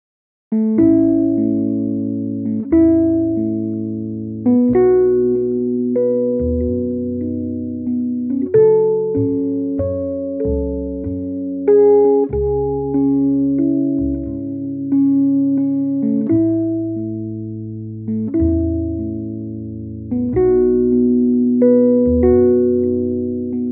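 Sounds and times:
instrumental music: 0.5s - 23.7s.

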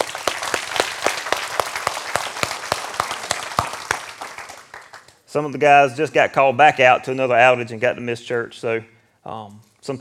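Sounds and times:
audience applauding: 0.0s - 5.2s
speech: 5.3s - 9.9s.

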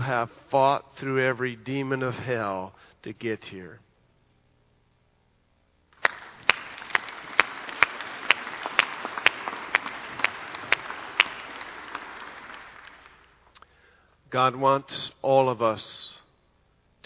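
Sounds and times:
speech: 0.1s - 3.8s, 14.3s - 16.2s
audience applause: 6.0s - 13.3s.

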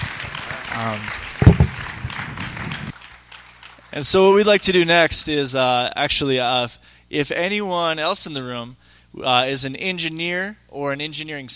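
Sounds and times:
audience applauding: 0.0s - 4.2s
speech: 0.8s - 1.3s, 3.9s - 11.5s.

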